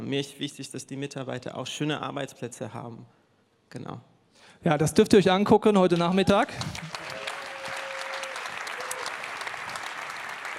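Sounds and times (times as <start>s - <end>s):
speech: 0.0s - 6.9s
audience applause: 6.2s - 10.5s.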